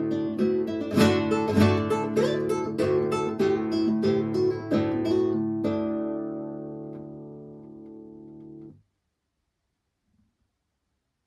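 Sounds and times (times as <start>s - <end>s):
guitar playing an easy arrangement of a Polish folk song: 0.0s - 8.7s.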